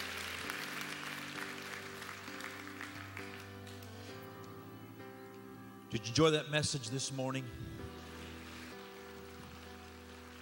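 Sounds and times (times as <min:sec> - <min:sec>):
church congregation applauding to welcome new members: 0:00.0 - 0:04.3, 0:08.1 - 0:10.4
sustained keyboard chords: 0:00.0 - 0:10.4
speech: 0:05.9 - 0:07.8.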